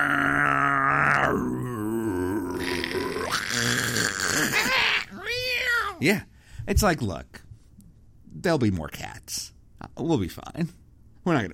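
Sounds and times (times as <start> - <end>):
voice imitating a cardboard crusher: 0.0 - 6.1
speech: 6.0 - 7.3, 8.4 - 11.5.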